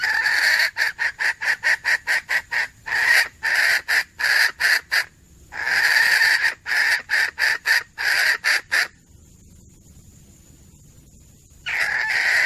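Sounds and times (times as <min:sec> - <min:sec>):
female junglefowl giving harsh clucking notes: 0:00.0 - 0:09.0, 0:11.6 - 0:12.4.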